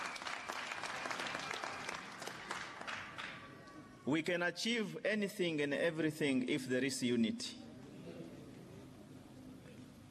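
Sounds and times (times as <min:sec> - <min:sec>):
audience applause: 0:00.0 - 0:03.6
speech: 0:04.0 - 0:07.6.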